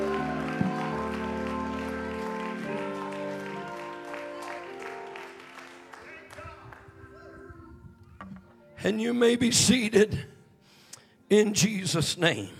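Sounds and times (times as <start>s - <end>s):
audience clapping hands: 0.0s - 7.1s
speech: 8.8s - 10.3s, 11.3s - 12.5s.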